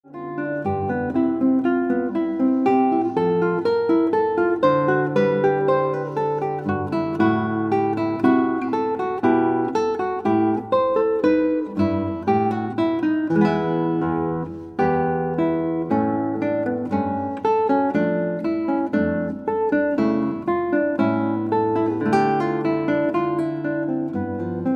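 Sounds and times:
guitar: 0:00.0 - 0:24.7.

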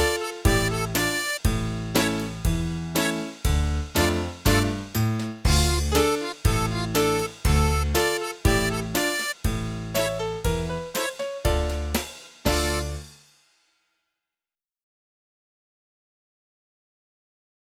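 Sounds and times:
flute dance music: 0:00.0 - 0:13.0.

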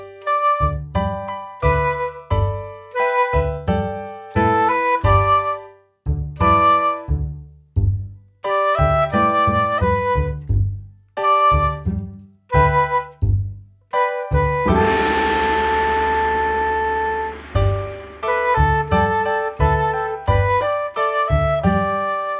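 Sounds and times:
flute: 0:00.1 - 0:05.8, 0:06.4 - 0:07.3, 0:08.5 - 0:10.5, 0:11.2 - 0:13.3, 0:13.9 - 0:22.3.

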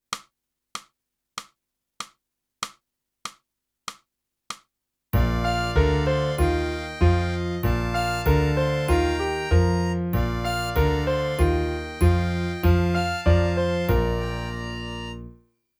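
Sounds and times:
clarinet: 0:05.2 - 0:15.4.

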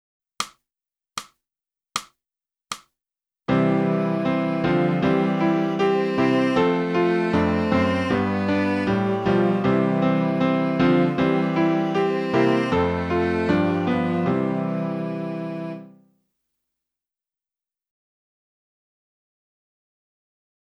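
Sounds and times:
flute: 0:03.6 - 0:16.0.

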